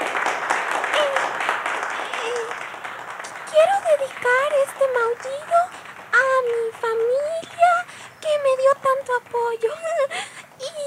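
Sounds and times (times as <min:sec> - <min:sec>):
audience applause: 0:00.0 - 0:08.2
speech: 0:03.6 - 0:05.8, 0:06.4 - 0:07.8, 0:08.4 - 0:10.3.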